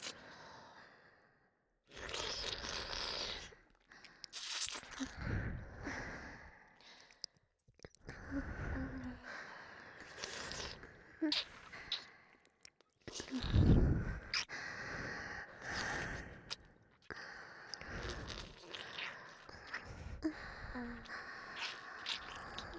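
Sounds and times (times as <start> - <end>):
wet sucking sounds: 0.0 - 0.2, 1.9 - 5.6, 10.0 - 14.5, 15.4 - 22.7
breathing in both ears: 0.0 - 1.6, 5.2 - 7.3, 8.1 - 10.3, 13.6 - 22.7.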